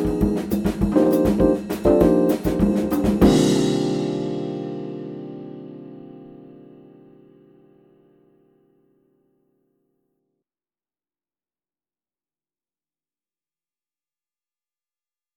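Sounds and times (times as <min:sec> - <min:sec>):
bass playing samba jazz play-along: 0:00.0 - 0:06.5.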